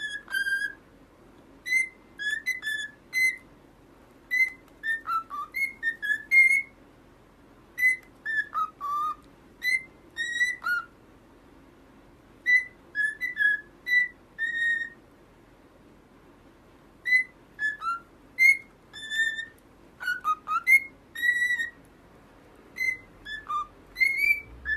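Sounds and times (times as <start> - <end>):
cockatiel whistling: 0.0 - 0.8, 1.6 - 3.5, 4.3 - 6.8, 7.8 - 11.0, 12.4 - 15.0, 17.0 - 21.8, 22.7 - 24.7.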